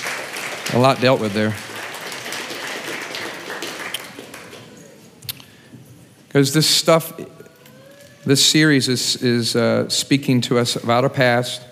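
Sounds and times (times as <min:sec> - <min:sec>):
audience clapping: 0:00.0 - 0:05.2
speech: 0:00.7 - 0:01.7, 0:06.3 - 0:07.4, 0:08.2 - 0:11.7.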